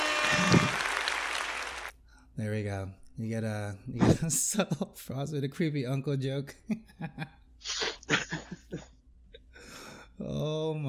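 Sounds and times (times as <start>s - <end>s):
applause: 0.0s - 1.9s
speech: 2.4s - 7.8s, 10.2s - 10.8s.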